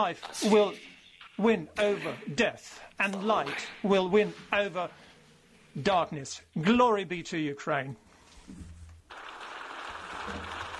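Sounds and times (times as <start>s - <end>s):
speech: 0.0s - 5.0s, 5.8s - 8.7s
standing ovation applause in the European Parliament: 9.1s - 10.7s.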